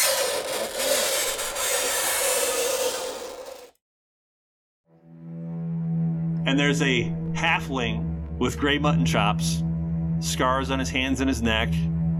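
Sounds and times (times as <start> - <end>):
whining squeal: 0.0 - 3.7
fingernails screeching on a chalkboard: 0.0 - 3.8
speech: 6.5 - 11.9.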